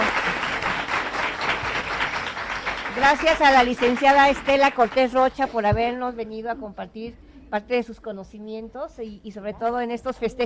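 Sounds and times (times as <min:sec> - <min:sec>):
audience applause: 0:00.0 - 0:05.3
speech: 0:03.0 - 0:10.4.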